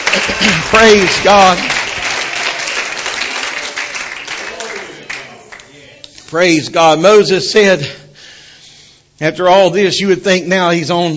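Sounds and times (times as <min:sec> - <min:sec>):
audience clapping: 0:00.0 - 0:06.4
speech: 0:00.2 - 0:01.9, 0:06.3 - 0:08.0, 0:09.2 - 0:11.1.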